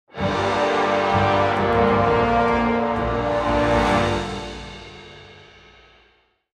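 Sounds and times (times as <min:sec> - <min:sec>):
musical stinger: 0:00.1 - 0:05.5.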